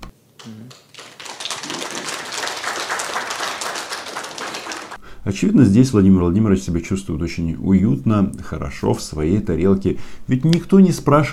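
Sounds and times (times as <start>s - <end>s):
stormy audience applause: 0.9s - 5.0s
speech: 5.2s - 11.3s.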